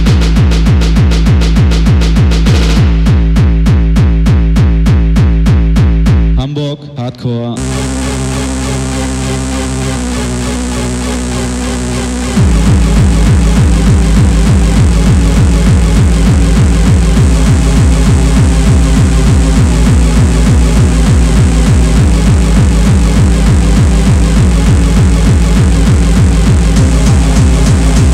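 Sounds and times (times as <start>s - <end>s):
hardcore anthem straight kick drum rave in Hamburg: 0.0s - 6.4s, 7.6s - 28.1s.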